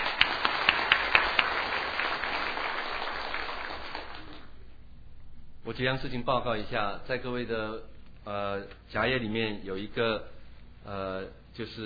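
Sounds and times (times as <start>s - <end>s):
crowd applauding to welcome guests: 0.0s - 4.6s
speech: 5.7s - 11.8s.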